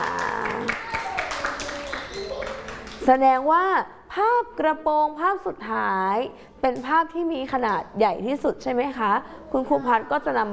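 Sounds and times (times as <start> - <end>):
children clapping: 0.0 - 3.1
speech: 3.1 - 10.5.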